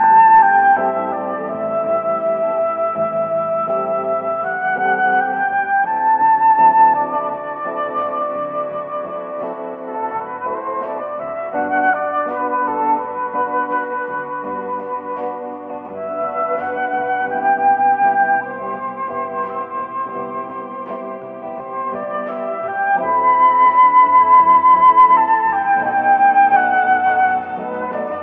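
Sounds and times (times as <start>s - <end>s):
flute: 0.0s - 28.2s
jazz hip hop music loops: 0.0s - 28.2s.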